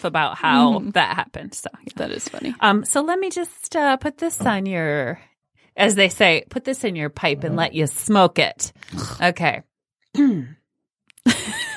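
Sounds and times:
speech: 0.0 - 10.6, 11.2 - 11.6
throat clearing: 10.1 - 10.6.

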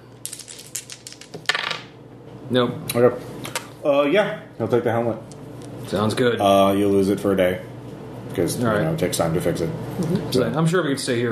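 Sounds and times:
dice rolling across a hard surface: 0.3 - 1.9
speech: 2.5 - 7.7, 8.4 - 11.3.

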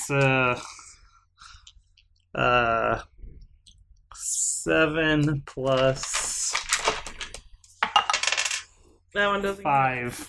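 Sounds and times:
speech: 0.1 - 0.8, 2.3 - 3.1, 4.6 - 6.3, 9.2 - 10.2
dice rolling across a hard surface: 5.7 - 8.8.

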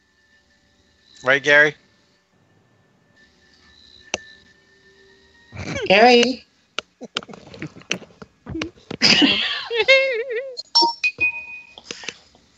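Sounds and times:
speech: 1.2 - 1.8, 5.9 - 7.2
laughter: 5.6 - 5.9, 7.0 - 8.0, 8.9 - 10.6
mobile phone notification trill and tones: 10.6 - 11.8.

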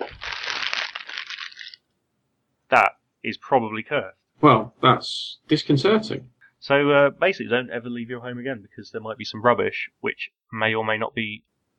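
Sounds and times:
plastic bag crinkling: 0.0 - 1.8
speech: 2.7 - 11.5.

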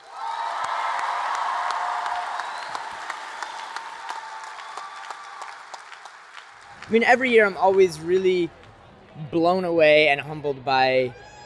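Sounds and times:
scattered cheers and whoops: 0.0 - 6.1
audience applauding a poet: 0.0 - 8.4
speech: 6.9 - 8.6, 9.2 - 11.3.

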